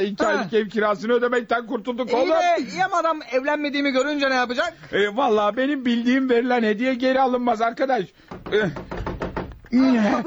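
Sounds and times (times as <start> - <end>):
speech: 0.0 - 9.0, 9.7 - 10.2
knocking on a door: 8.3 - 9.7.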